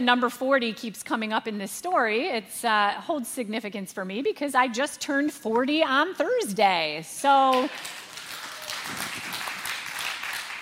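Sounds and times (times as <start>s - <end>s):
speech: 0.0s - 8.0s, 8.9s - 9.3s
audience applause: 7.5s - 10.6s.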